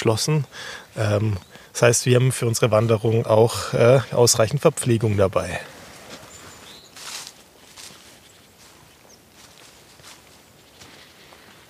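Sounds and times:
speech: 0:00.0 - 0:05.8
birds chirping in spring forest: 0:00.0 - 0:11.6
footsteps crunching along a path: 0:05.6 - 0:11.6.

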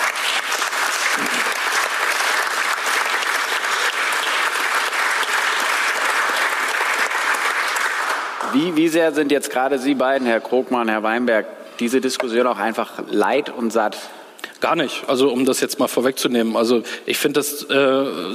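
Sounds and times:
audience applause: 0:00.0 - 0:08.7
speech: 0:08.6 - 0:18.3.

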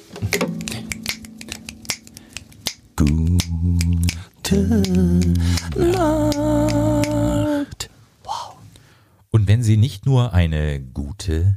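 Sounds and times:
finger snapping: 0:00.4 - 0:07.2
speech: 0:03.0 - 0:07.0, 0:09.6 - 0:11.5.

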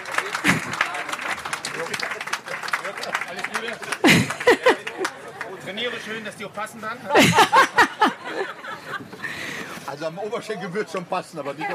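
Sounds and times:
audience applause: 0:00.0 - 0:05.6
people laughing: 0:00.0 - 0:05.6, 0:07.0 - 0:09.8
speech: 0:03.1 - 0:04.4, 0:05.7 - 0:09.0, 0:09.9 - 0:11.7.

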